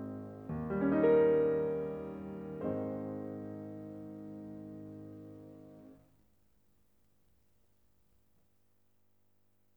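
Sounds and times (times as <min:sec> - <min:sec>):
piano etude: 0:00.0 - 0:06.0.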